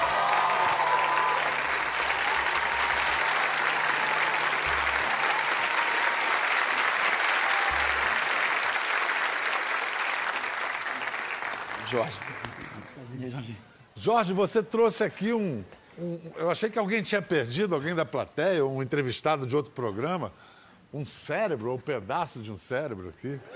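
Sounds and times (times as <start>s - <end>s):
audience applause: 0.0s - 13.0s
speech: 11.9s - 23.5s.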